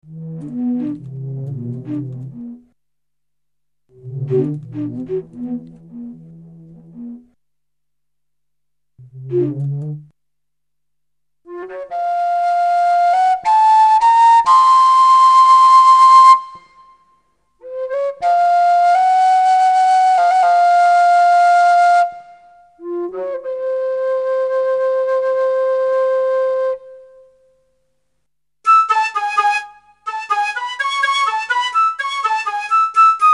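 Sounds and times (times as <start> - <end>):
flute: 0.0 - 2.7, 3.9 - 7.3, 11.4 - 27.7, 28.6 - 33.3.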